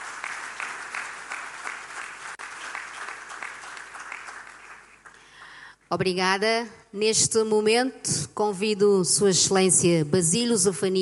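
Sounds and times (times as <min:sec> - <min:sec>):
audience applause: 0:00.0 - 0:05.3
speech: 0:05.9 - 0:11.0.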